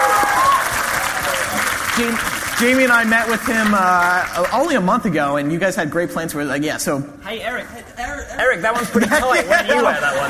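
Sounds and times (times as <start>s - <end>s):
audience round of applause: 0.0s - 4.8s
speech: 2.0s - 10.2s
laughter: 7.9s - 10.2s.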